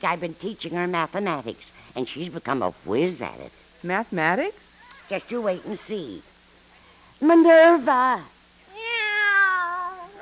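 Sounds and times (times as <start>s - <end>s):
speech: 0.0s - 6.3s, 7.2s - 8.3s
pet cat meowing: 8.7s - 10.2s.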